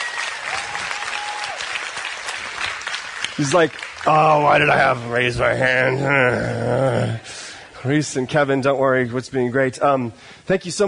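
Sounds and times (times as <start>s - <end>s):
audience applause: 0.0s - 5.6s
speech: 3.4s - 10.8s.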